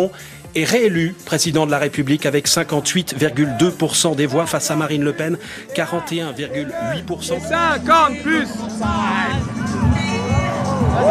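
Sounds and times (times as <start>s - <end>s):
speech: 0.0s - 9.6s
crowd cheering and shouting at election night rally: 3.1s - 11.1s.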